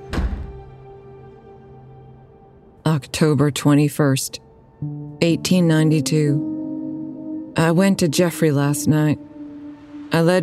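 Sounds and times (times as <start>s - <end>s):
door slamming: 0.0s - 0.8s
speech: 3.0s - 6.5s, 7.6s - 9.3s, 10.1s - 10.4s.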